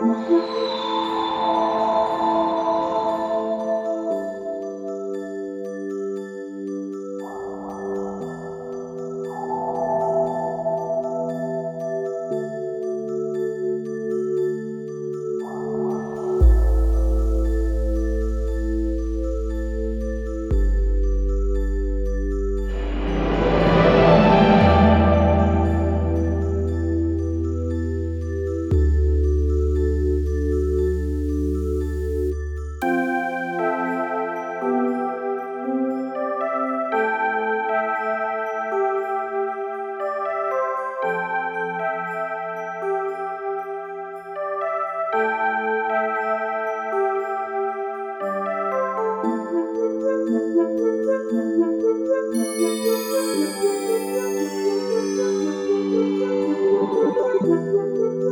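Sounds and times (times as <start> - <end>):
chill music: 0.0 - 58.3.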